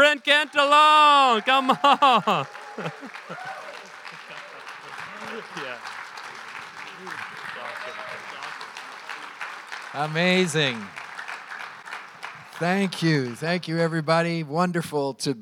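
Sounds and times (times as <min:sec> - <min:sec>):
audience applause welcoming a pastor as guest speaker: 0:00.0 - 0:14.1
speech: 0:00.1 - 0:03.6, 0:05.3 - 0:06.0, 0:09.9 - 0:11.0, 0:12.6 - 0:15.4
laughter: 0:01.0 - 0:11.4.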